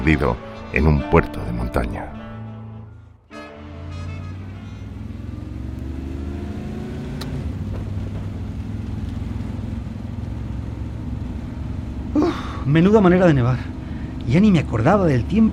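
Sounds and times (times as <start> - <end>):
speech: 0.0 - 2.2, 12.7 - 13.7, 14.3 - 15.5
company van engine driven over a mountain pass: 3.3 - 15.5.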